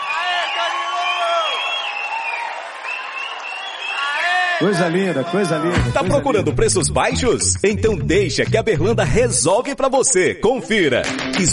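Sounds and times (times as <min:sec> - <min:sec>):
whistles: 0:00.0 - 0:04.2
audience applause: 0:00.0 - 0:05.7
crowd cheering: 0:00.0 - 0:06.4
speech: 0:04.6 - 0:11.5.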